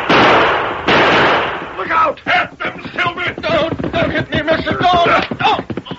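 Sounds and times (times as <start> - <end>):
gunshots: 0.0 - 2.1
excited voices talking: 1.8 - 5.9.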